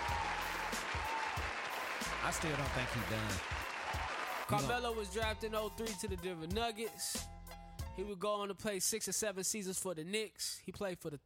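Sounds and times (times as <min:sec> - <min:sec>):
applause: 0:00.0 - 0:04.8
speech: 0:02.2 - 0:03.6, 0:04.5 - 0:07.3, 0:08.0 - 0:11.2.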